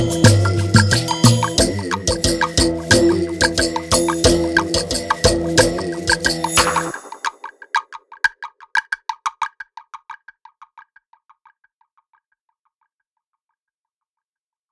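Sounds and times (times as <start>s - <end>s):
percussion: 0.0s - 10.4s.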